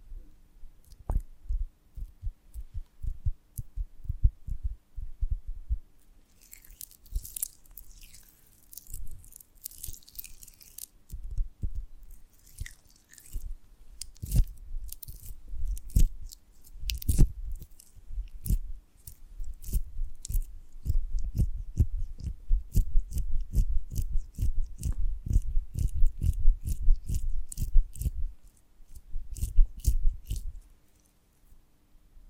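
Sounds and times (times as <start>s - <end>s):
low thudding: 1.1s - 5.9s
sticky honeycomb on a branch bitten and chewed: 6.3s - 31.1s.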